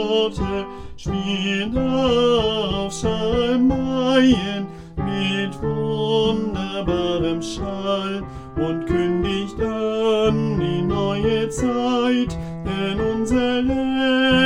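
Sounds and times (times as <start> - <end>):
alto singing Advent music: 0.0 - 14.4.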